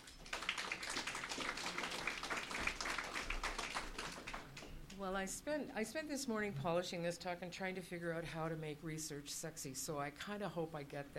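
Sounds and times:
audience applause welcoming a speaker at a talk: 0.0s - 4.7s
speech: 5.0s - 11.1s.

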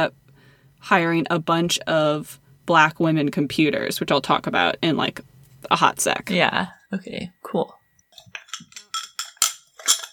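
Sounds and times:
speech: 0.0s - 0.2s, 0.8s - 7.8s
ice cubes clinking against a drinking glass: 8.2s - 10.1s.

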